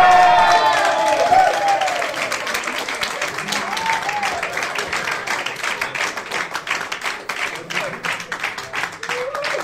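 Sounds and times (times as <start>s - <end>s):
FDP supporters whooping and shouting at an election night event: 0.0s - 2.4s, 3.3s - 4.7s
FDP supporters applauding at an election night event: 0.0s - 9.6s.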